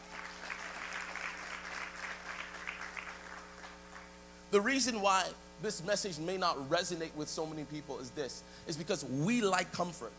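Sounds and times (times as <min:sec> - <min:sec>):
audience clapping: 0:00.0 - 0:04.2
low steady hum: 0:00.0 - 0:10.1
speech: 0:04.5 - 0:10.1.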